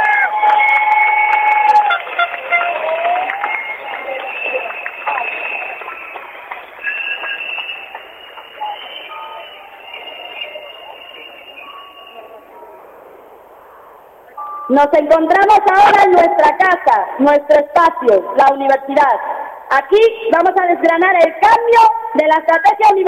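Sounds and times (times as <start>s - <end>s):
applause: 0.0s - 11.8s
speech: 14.7s - 23.0s.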